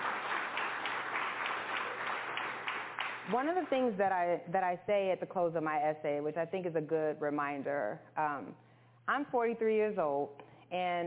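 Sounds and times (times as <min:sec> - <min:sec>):
audience applause: 0:00.0 - 0:03.8
speech: 0:03.3 - 0:11.0.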